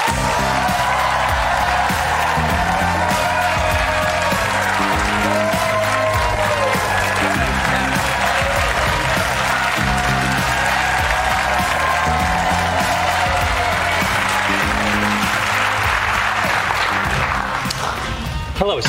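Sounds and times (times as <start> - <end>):
faint cheering: 0.0 - 17.5
studio audience applause on a late-night talk show: 0.0 - 18.4.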